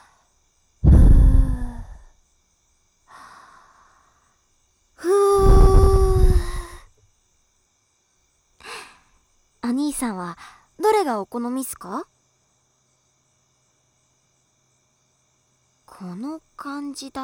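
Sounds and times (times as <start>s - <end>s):
blowing into left ear ASMR: 0.8s - 2.1s, 5.1s - 6.8s.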